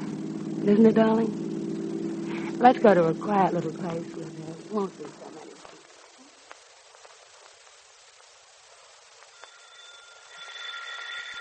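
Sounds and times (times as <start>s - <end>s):
speech: 0.6s - 1.4s, 2.6s - 5.2s
doorbell ringing: 9.4s - 11.3s.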